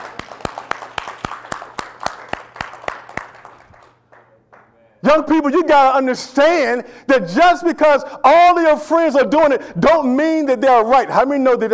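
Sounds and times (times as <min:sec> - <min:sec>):
audience clapping: 0:00.0 - 0:04.8
speech: 0:05.1 - 0:11.7.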